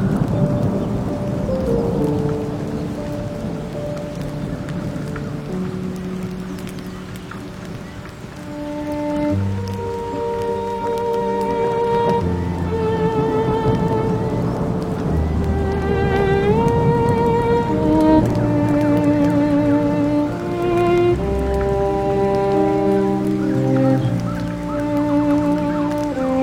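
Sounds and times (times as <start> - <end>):
rain: 0.0 - 26.4
sea waves: 0.0 - 26.4
water: 0.0 - 26.4.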